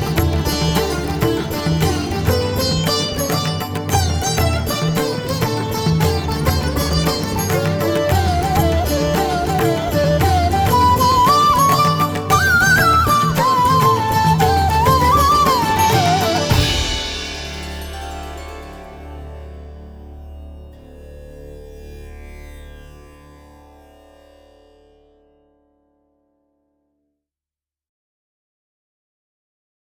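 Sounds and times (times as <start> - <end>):
flute: 0.0 - 17.8.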